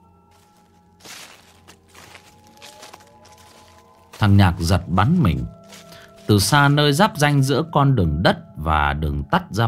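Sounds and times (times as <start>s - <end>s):
soft footsteps of a young girl walking along a dirt path: 0.3s - 7.0s
speech: 4.2s - 5.6s, 6.3s - 9.6s.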